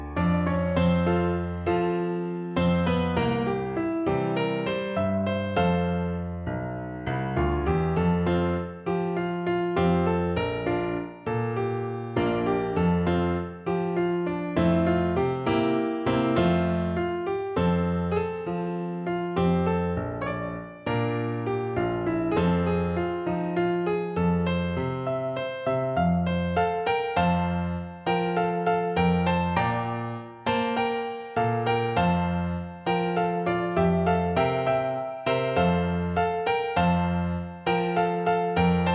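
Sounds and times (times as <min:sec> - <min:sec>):
piano piece: 0:00.0 - 0:38.9.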